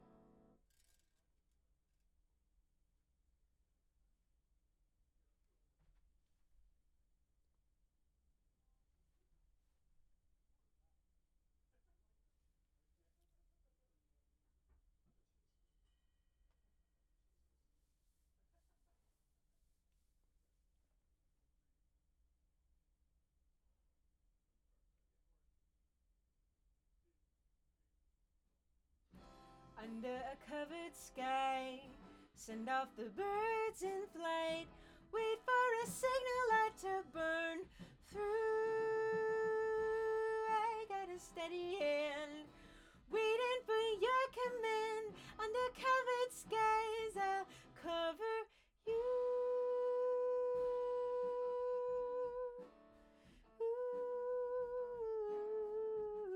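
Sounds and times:
acoustic guitar: 0:00.0 - 0:01.1, 0:29.1 - 0:56.3.

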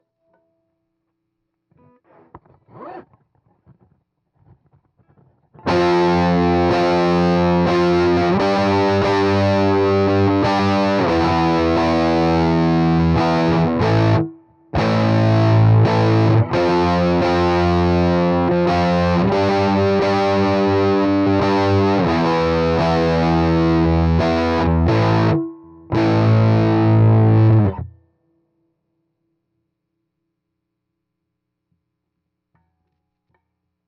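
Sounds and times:
heavy electric guitar: 0:05.6 - 0:27.9.

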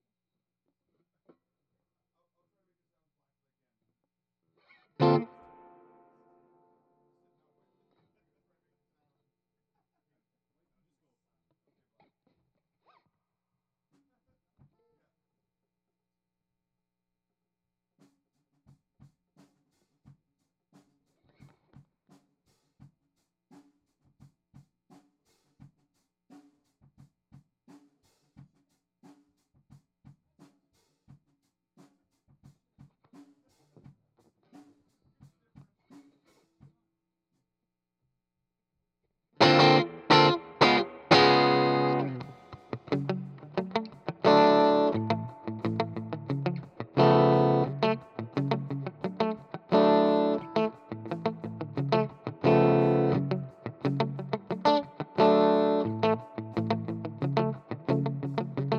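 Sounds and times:
guitar: 0:04.7 - 0:06.7, 0:39.4 - 0:58.7.

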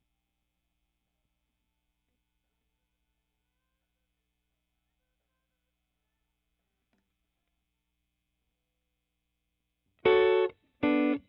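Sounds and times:
overdriven rhythm guitar: 0:10.0 - 0:11.2.

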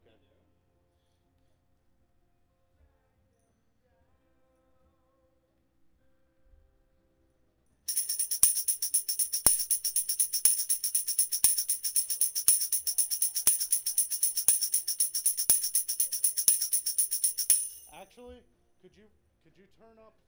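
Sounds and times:
tambourine: 0:07.9 - 0:18.1.

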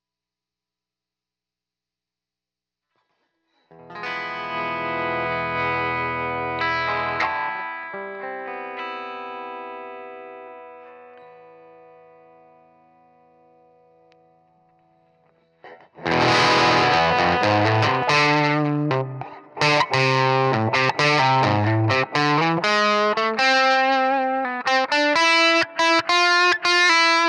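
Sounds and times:
guitar solo: 0:03.7 - 0:27.2.

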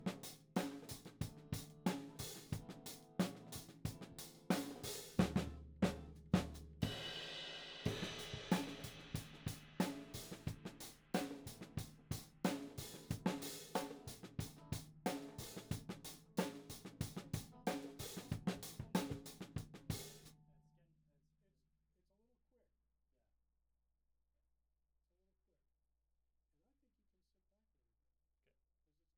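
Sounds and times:
tom drum: 0:00.0 - 0:20.3.

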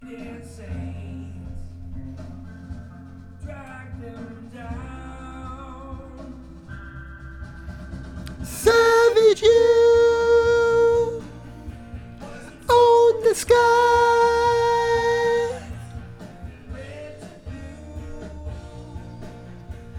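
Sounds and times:
backing vocals: 0:08.3 - 0:19.4.

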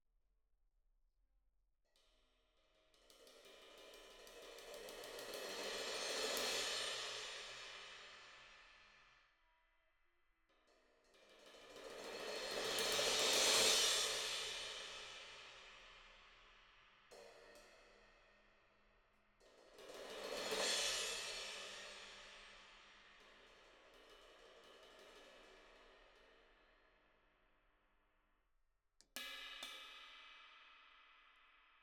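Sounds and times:
cymbal: 0:03.2 - 0:09.2, 0:11.1 - 0:18.6, 0:19.4 - 0:26.6.

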